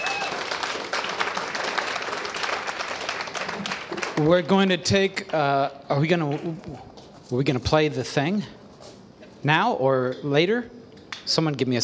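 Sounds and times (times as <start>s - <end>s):
audience applause: 0.0s - 4.5s
speech: 4.2s - 8.6s, 9.4s - 11.8s.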